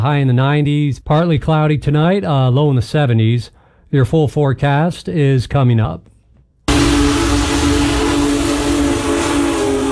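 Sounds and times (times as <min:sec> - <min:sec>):
speech: 0:00.0 - 0:06.1
steam locomotive whistle blast: 0:06.7 - 0:09.9.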